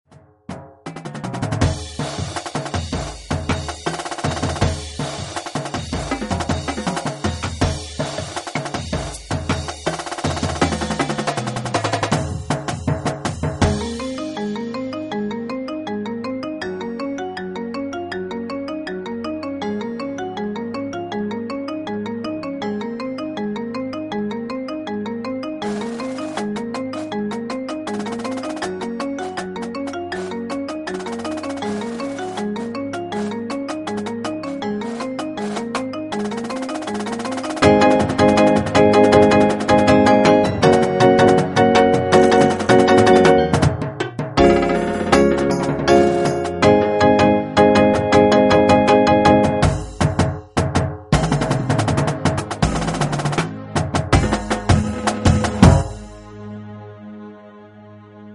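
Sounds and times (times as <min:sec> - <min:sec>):
percussion sample: 0:00.1 - 0:15.6, 0:25.4 - 0:56.4.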